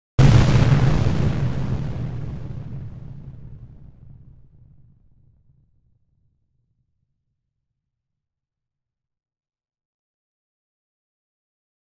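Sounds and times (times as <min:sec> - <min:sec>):
explosion: 0:00.2 - 0:05.4.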